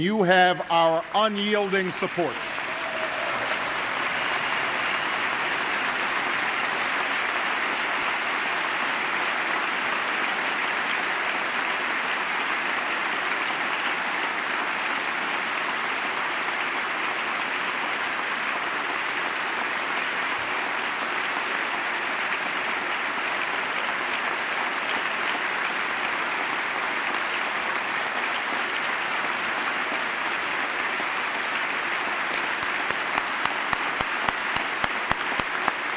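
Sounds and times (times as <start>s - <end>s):
speech: 0.0s - 2.6s
large crowd applause, standing ovation: 0.0s - 35.9s.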